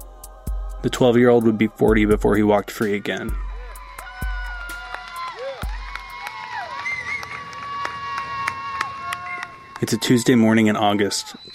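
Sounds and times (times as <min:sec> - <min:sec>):
crowd gathered outside a prison murmuring and cheering: 0:00.0 - 0:11.5
speech: 0:00.8 - 0:03.5, 0:09.8 - 0:11.5.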